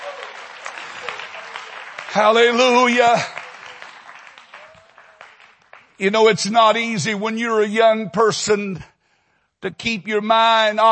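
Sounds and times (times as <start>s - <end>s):
audience clapping hands: 0.0s - 7.0s
speech: 2.1s - 3.4s, 6.0s - 8.9s, 9.6s - 10.9s.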